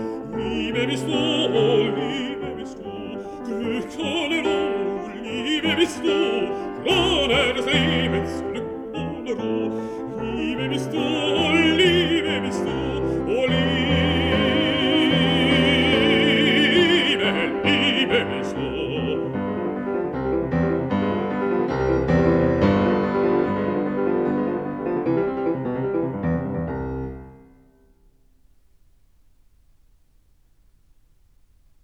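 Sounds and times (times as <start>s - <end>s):
person singing: 0.0s - 19.8s
piano: 0.0s - 31.8s.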